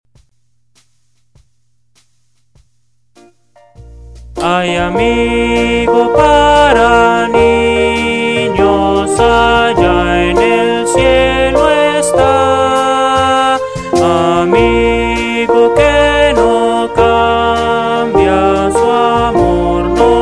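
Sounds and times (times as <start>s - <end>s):
Christian hymn for children: 4.4s - 20.1s.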